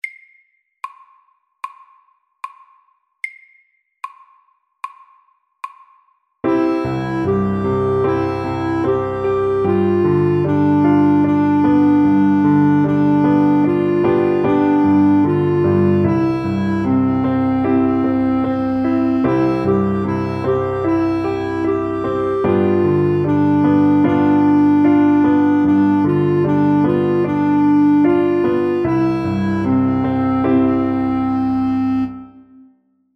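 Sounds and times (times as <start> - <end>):
slow Welsh melody: 6.4 - 32.9.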